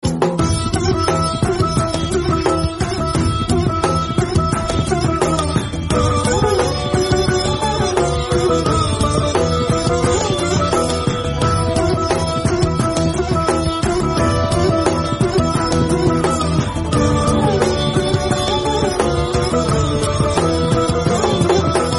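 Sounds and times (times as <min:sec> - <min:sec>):
instrumental background music: 0:00.0 - 0:21.9.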